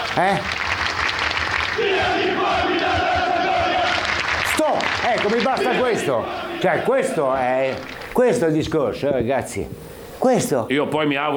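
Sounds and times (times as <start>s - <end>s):
football supporters roaring in protest: 0.0s - 8.4s
speech: 0.2s - 0.6s, 1.8s - 3.2s, 4.6s - 11.3s
football supporters chanting in protest against club ownership: 1.3s - 8.4s.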